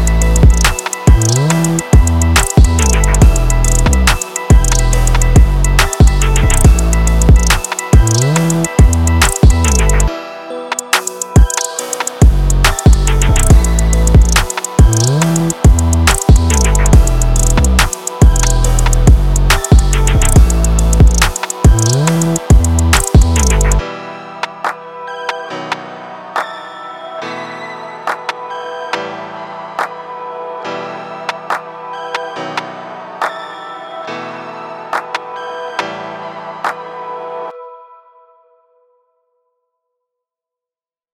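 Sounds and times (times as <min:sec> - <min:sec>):
beats: 0:00.0 - 0:10.1, 0:10.8 - 0:23.8.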